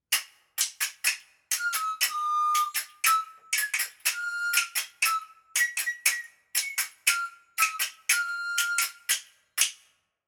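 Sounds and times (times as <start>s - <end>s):
panpipes: 1.6s - 9.2s.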